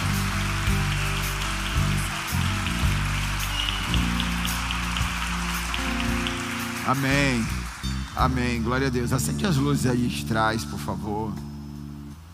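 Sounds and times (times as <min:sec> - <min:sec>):
audience applauding: 0:00.0 - 0:09.3
speech: 0:06.9 - 0:07.6, 0:08.2 - 0:11.5.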